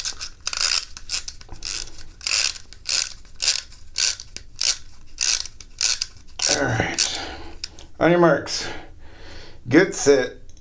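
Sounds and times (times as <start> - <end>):
clockwork toy boat being wound up: 0.0 - 7.7
speech: 8.0 - 8.8, 9.7 - 10.4.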